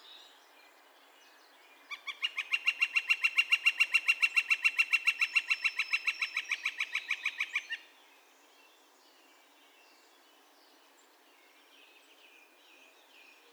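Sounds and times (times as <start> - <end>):
northern flicker calling: 1.9 - 7.8.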